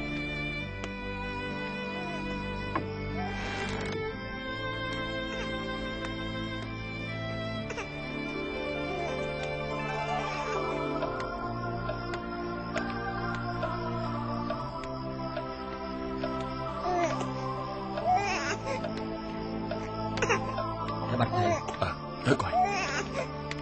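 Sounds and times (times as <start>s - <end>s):
steady tonal hum: 0.0s - 23.6s
small child crying: 8.8s - 11.2s, 18.0s - 18.9s, 22.4s - 23.3s.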